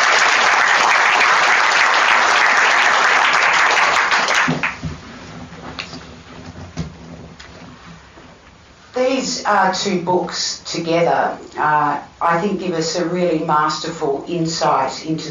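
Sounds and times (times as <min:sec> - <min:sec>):
audience applause at a book event on Australians and the First World War: 0:00.0 - 0:04.8
speech: 0:09.4 - 0:15.2.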